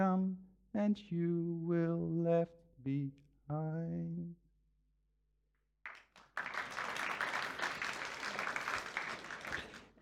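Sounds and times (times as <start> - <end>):
speech: 0.0 - 4.4
audience applause: 5.9 - 9.9.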